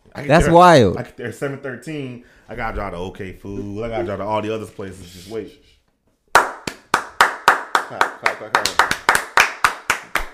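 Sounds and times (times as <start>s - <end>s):
speech: 0.2s - 5.8s, 7.9s - 9.0s
hand clapping: 6.3s - 10.3s.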